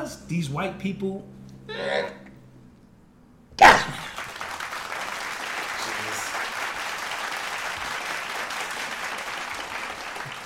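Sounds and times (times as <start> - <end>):
speech: 0.1 - 2.2
audience clapping: 3.8 - 10.4.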